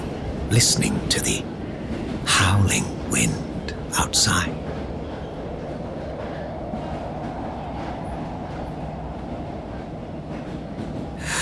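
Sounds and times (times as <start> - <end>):
train rumbling along rails: 0.0 - 11.4
speech: 0.5 - 1.6, 2.3 - 4.6.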